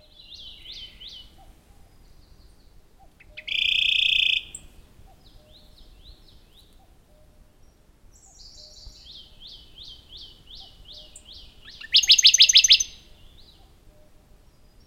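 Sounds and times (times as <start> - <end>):
Radde's warbler trilling: 3.2 - 5.8, 8.3 - 13.6.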